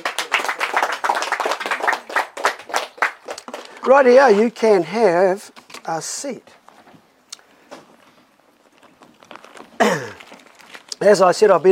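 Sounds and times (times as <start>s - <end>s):
audience clapping: 0.0s - 4.6s
speech: 3.8s - 6.6s, 11.0s - 11.7s.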